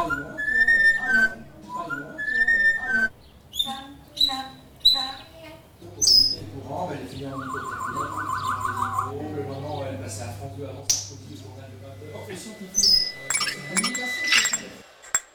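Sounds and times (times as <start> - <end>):
pet parrot whistling a bright melodic phrase: 0.0 - 9.8, 12.6 - 14.8
pet parrot chirpy voice-like bursts and sharp high squeak: 2.0 - 6.6, 7.3 - 9.2, 12.8 - 15.2.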